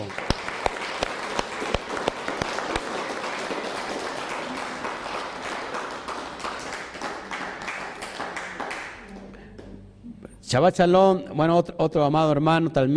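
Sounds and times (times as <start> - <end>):
audience applause: 0.0 - 9.3
speech: 10.5 - 12.9.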